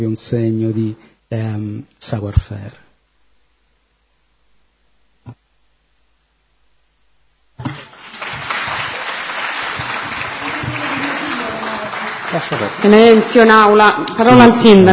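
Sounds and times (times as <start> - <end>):
speech: 0.0 - 2.8, 12.3 - 14.9
applause in council chamber: 7.7 - 13.8.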